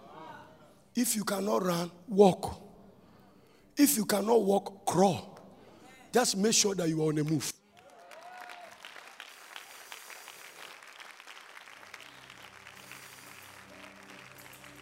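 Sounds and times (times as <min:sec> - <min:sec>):
speech: 0:01.0 - 0:02.6, 0:03.8 - 0:05.3, 0:06.1 - 0:07.6
audience clapping: 0:07.2 - 0:14.8.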